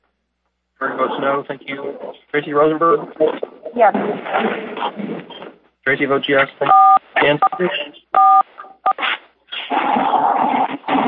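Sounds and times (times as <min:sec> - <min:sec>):
speech: 0:00.8 - 0:08.0
noisy sound: 0:00.8 - 0:11.0
telephone dialing beeps: 0:06.7 - 0:09.0.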